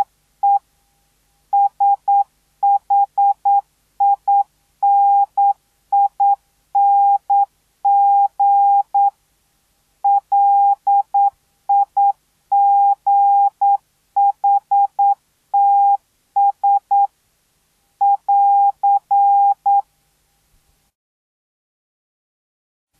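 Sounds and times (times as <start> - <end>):
morse code beeps: 1.6 - 9.1, 10.1 - 17.1, 18.0 - 19.8.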